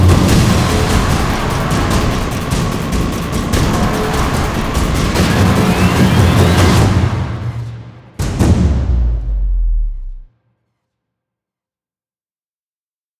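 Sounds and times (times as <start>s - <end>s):
cinematic action drums music: 0.0s - 10.3s.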